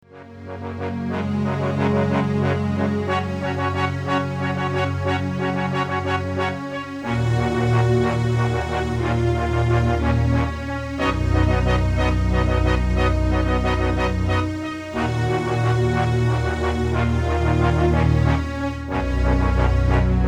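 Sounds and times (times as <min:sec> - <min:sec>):
horns: 0:00.1 - 0:20.2.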